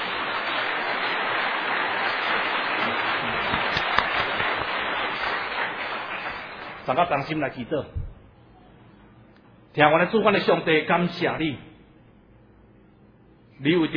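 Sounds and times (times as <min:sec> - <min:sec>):
audience applause: 0:00.0 - 0:07.1
speech: 0:06.9 - 0:08.0, 0:09.8 - 0:11.7, 0:13.6 - 0:13.9.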